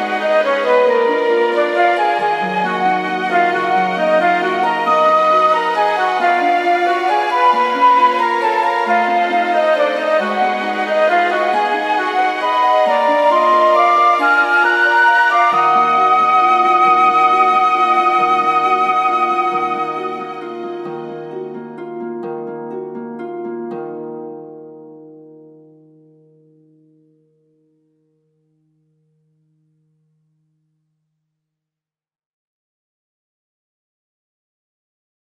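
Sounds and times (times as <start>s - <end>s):
waltz music: 0.0s - 25.6s.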